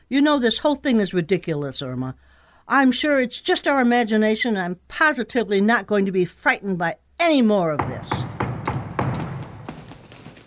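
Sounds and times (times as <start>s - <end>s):
speech: 0.1s - 8.2s
knocking on a door in a radio drama: 7.8s - 10.3s.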